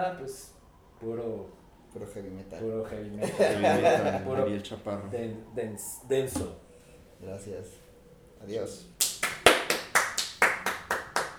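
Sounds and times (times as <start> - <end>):
speech: 0.0 - 6.6, 7.2 - 7.8, 8.4 - 9.0
laughter: 2.9 - 5.5
person clapping hands: 9.0 - 11.3.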